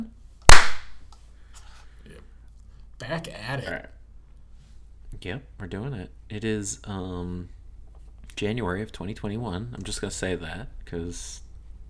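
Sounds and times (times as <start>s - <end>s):
hand clap for recording sync: 0.5s - 0.9s
speech: 3.0s - 4.0s, 5.2s - 7.6s, 8.4s - 11.4s.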